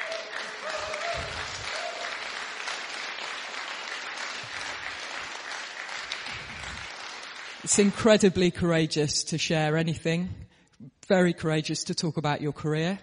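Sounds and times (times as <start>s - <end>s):
audience applause: 0.0s - 8.1s
speech: 7.6s - 10.4s, 11.1s - 13.0s.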